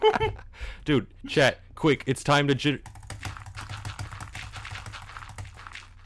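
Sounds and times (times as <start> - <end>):
speech: 0.0 - 3.0
butterfly clicking on a computer mouse while playing Minecraft: 2.9 - 6.0.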